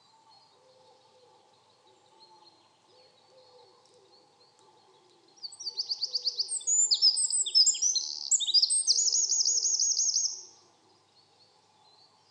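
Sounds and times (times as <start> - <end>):
Eurasian wren Troglodytes troglodytes singing: 5.4 - 10.6.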